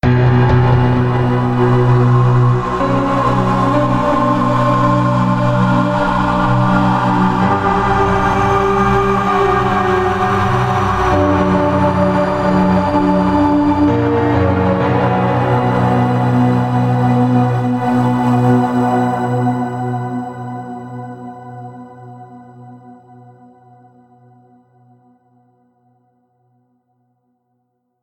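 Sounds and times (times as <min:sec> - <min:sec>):
default intro music: 0:00.0 - 0:19.5.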